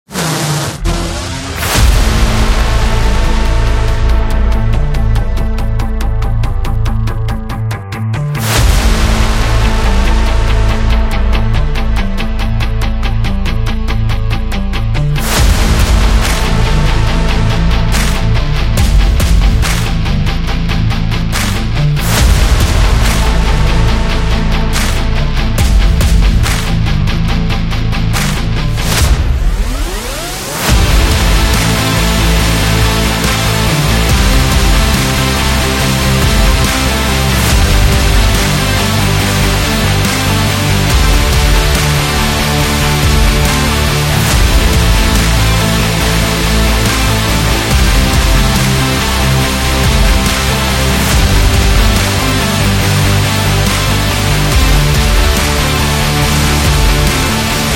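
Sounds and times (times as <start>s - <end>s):
electro rock trailer music: 0.0s - 57.7s.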